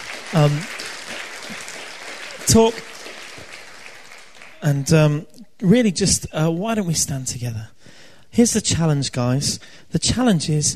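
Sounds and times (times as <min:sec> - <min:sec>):
audience applause: 0:00.0 - 0:05.1
speech: 0:00.3 - 0:00.8, 0:02.5 - 0:02.9, 0:04.6 - 0:10.7.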